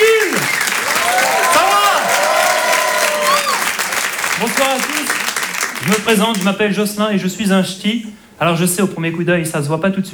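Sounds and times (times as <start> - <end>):
audience applause at a stand-up comedy contest: 0.0 - 6.6
speech: 5.9 - 10.1.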